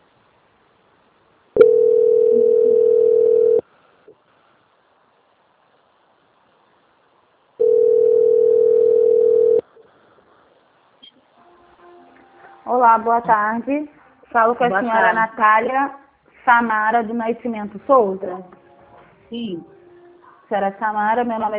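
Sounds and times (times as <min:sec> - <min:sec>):
telephone ringing tone while a call is transferred: 0:01.6 - 0:03.6, 0:07.6 - 0:09.7
speech: 0:12.8 - 0:18.6, 0:19.3 - 0:19.8, 0:20.5 - 0:21.5.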